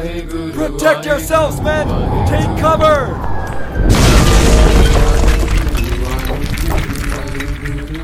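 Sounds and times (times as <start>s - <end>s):
speech: 0.0s - 4.0s
massive boulder slamming into the ground: 3.8s - 7.6s.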